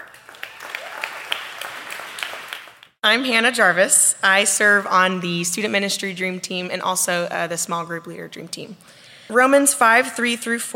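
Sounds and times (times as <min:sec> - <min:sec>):
audience applause welcoming a speaker at a Rockbrook church service: 0:00.0 - 0:03.0
speech: 0:03.0 - 0:10.7.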